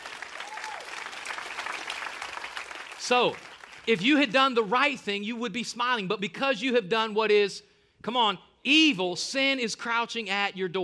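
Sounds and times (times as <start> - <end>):
audience clapping: 0.0 - 4.3
speech: 3.0 - 10.8.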